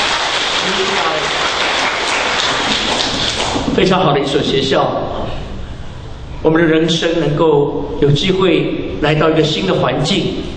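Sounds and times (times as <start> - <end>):
audience applause: 0.0 - 3.7
speech: 0.7 - 1.4, 3.8 - 5.4, 6.4 - 10.5.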